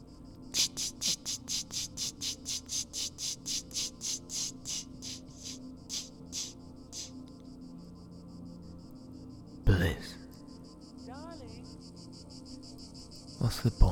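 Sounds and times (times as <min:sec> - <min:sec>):
cicada buzzing: 0:00.0 - 0:13.9
speech: 0:13.4 - 0:13.9.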